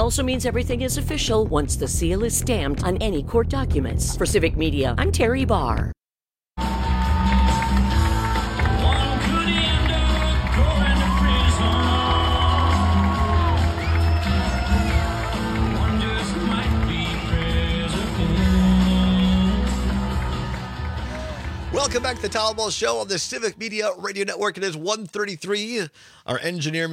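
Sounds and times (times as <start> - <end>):
speech: 0.1 - 6.0, 21.8 - 26.9
crowd cheering at a Trump rally in Iowa: 6.6 - 23.8.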